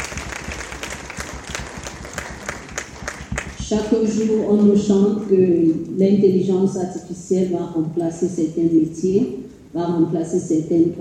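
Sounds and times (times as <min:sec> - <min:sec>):
audience applause: 0:00.0 - 0:03.6
speech: 0:03.7 - 0:10.9.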